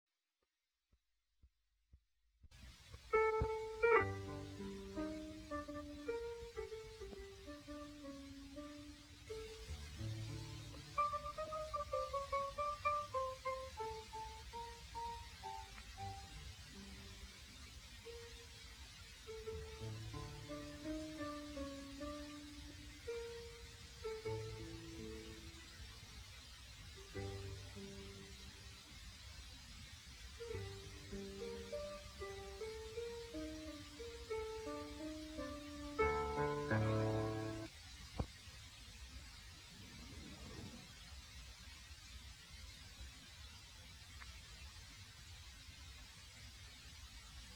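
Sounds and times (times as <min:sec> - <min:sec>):
solo piano in poor audio quality: 0:03.0 - 0:37.7.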